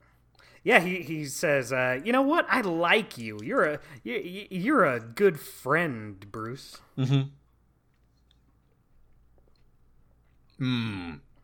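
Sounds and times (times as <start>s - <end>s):
speech: 0.6s - 7.4s, 10.6s - 11.3s
person chewing a burrito: 7.5s - 11.4s.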